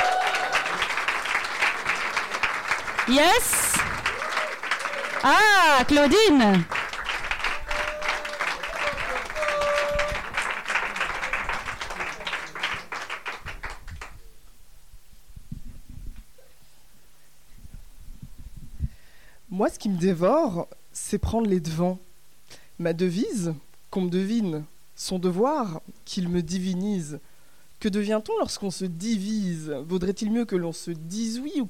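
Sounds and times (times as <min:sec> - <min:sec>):
audience applause: 0:00.0 - 0:14.2
speech: 0:03.1 - 0:03.7, 0:05.2 - 0:06.8, 0:19.6 - 0:22.1, 0:22.8 - 0:31.6.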